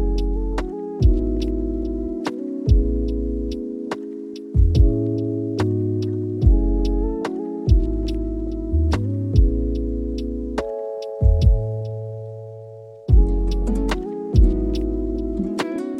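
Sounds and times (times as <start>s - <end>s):
sweet calm lofi chillhop music: 0.0s - 15.9s.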